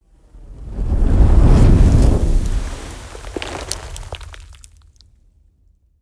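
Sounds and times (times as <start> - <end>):
fireball whoosh: 0.5 - 4.4.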